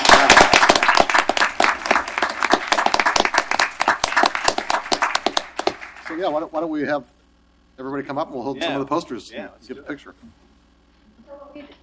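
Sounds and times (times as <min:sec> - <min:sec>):
audience applause for poster artists: 0:00.0 - 0:06.3
speech: 0:06.2 - 0:07.2, 0:07.8 - 0:10.4, 0:11.6 - 0:11.8.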